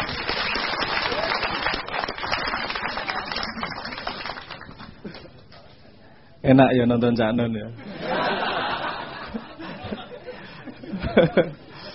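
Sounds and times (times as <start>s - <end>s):
audience applause: 0.0s - 5.2s
speech: 6.4s - 7.8s, 11.2s - 11.7s
laughter: 7.8s - 11.9s.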